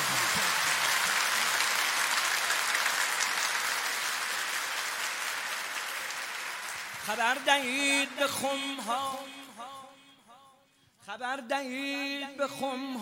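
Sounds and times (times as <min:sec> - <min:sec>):
audience clapping at a Persian-language religious gathering: 0:00.0 - 0:09.7
speech: 0:07.1 - 0:09.4, 0:11.1 - 0:13.0.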